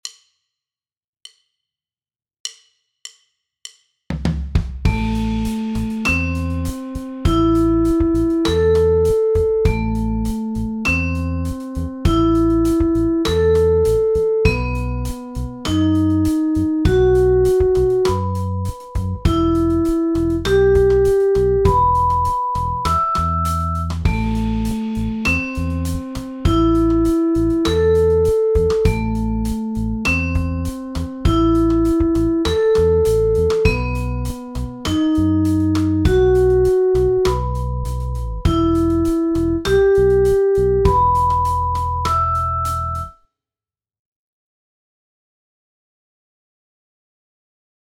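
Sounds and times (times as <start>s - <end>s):
arpeggios: 4.9s - 43.1s.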